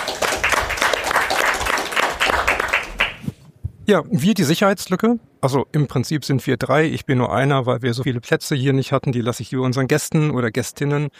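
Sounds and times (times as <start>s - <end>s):
audience applause: 0.0s - 3.3s
speech: 3.9s - 11.1s.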